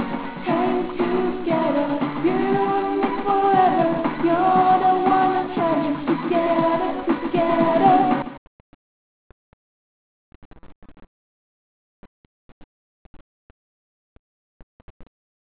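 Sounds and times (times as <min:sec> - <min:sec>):
karaoke singing: 0:00.0 - 0:08.4.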